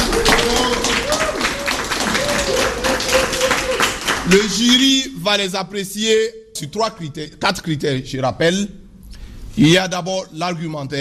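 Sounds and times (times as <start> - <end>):
audience clapping for two debate teams: 0.0 - 5.0
speech: 4.3 - 8.8, 9.6 - 11.0.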